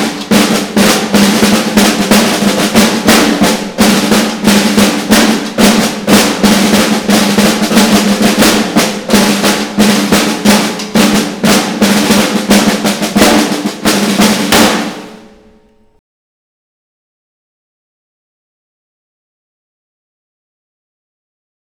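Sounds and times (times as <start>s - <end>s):
percussion: 0.0s - 16.0s.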